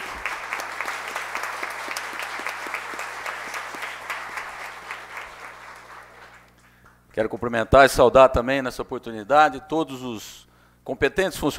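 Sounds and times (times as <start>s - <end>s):
warm round of applause: 0.0s - 6.8s
speech: 7.2s - 11.5s.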